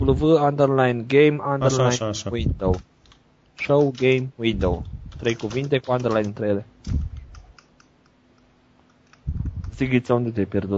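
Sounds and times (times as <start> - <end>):
speech: 0.0 - 2.9, 3.6 - 7.2, 9.8 - 10.7
keystrokes on a computer keyboard with a US layout: 5.1 - 9.8.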